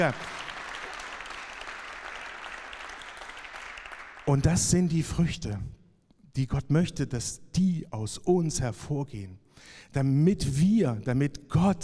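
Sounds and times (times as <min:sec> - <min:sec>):
speech: 0:00.0 - 0:00.4, 0:04.3 - 0:05.8, 0:06.4 - 0:11.8
audience applause: 0:00.0 - 0:04.3.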